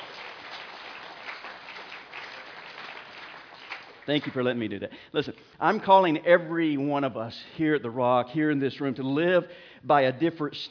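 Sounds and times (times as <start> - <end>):
audience clapping: 0.0 - 4.7
speech: 4.1 - 10.6.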